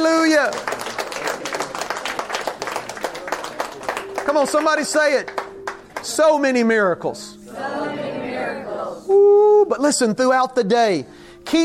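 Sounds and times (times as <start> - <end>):
audience clapping hands: 0.0 - 6.4
speech: 0.4 - 0.7, 4.4 - 5.4, 6.0 - 7.4, 8.6 - 11.6.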